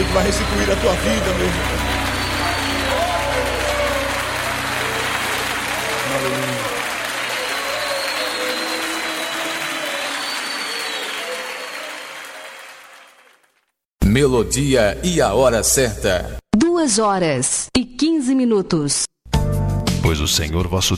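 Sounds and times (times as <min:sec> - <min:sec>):
large audience applause: 0:00.0 - 0:13.7
speech: 0:00.2 - 0:02.1, 0:06.2 - 0:06.7, 0:14.2 - 0:19.1, 0:20.0 - 0:20.9.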